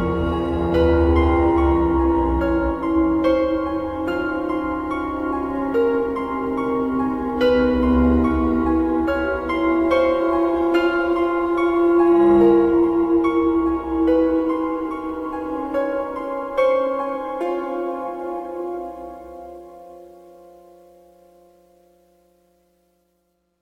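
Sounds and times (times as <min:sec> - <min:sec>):
creepy music box: 0:00.0 - 0:18.9.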